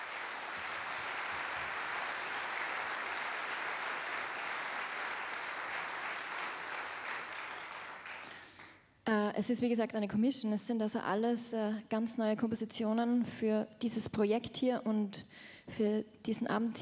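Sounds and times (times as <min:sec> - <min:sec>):
audience applause: 0:00.0 - 0:08.5
speech: 0:09.4 - 0:16.8.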